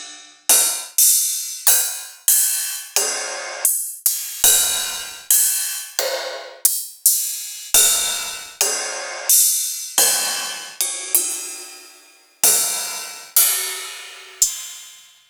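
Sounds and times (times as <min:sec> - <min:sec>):
ride cymbal: 0:00.5 - 0:15.2.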